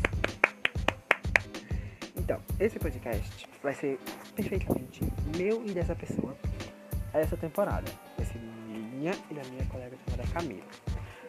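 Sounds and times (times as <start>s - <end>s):
hand clapping: 0.0s - 1.8s, 10.3s - 11.0s
speech: 2.3s - 6.5s, 7.1s - 10.9s.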